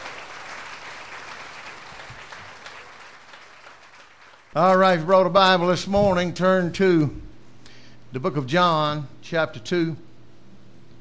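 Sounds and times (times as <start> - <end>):
audience applauding the musicians at a church service: 0.0 - 4.6
speech: 4.5 - 7.2, 8.1 - 10.0.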